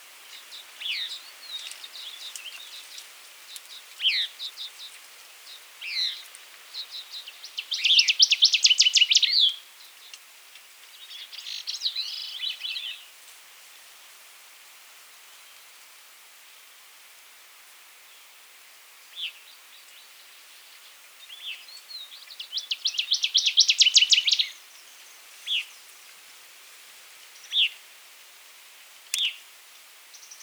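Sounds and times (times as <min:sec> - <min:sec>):
Northern Waterthrush Parkesia noveboracensis: 0:00.3 - 0:10.2, 0:10.9 - 0:13.0, 0:21.2 - 0:25.8.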